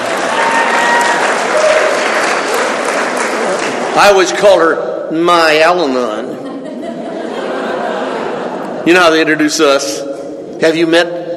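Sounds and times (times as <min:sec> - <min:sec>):
audience applause: 0:00.0 - 0:04.2
speech: 0:04.0 - 0:06.4, 0:08.8 - 0:10.0, 0:10.6 - 0:11.3
laughter: 0:06.0 - 0:09.4.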